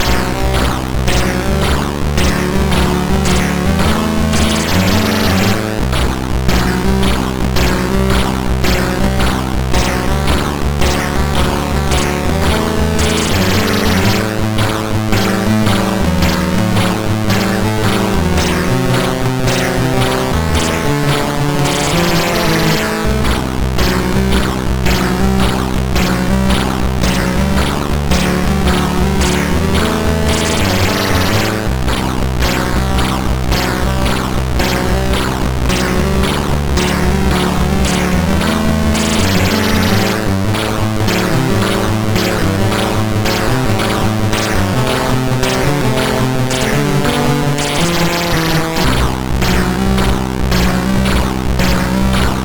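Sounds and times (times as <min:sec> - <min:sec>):
SID MOS6581R2 chiptune game music: 0:00.0 - 0:52.4.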